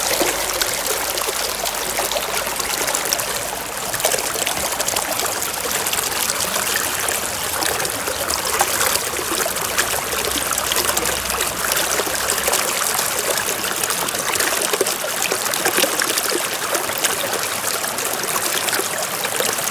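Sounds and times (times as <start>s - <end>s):
running stream water at a pond: 0.0s - 19.7s.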